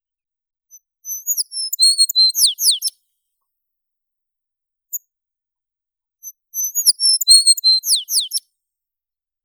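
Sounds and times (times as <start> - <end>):
American tree sparrow Spizella arborea singing: 0.7 - 3.0, 6.2 - 8.4.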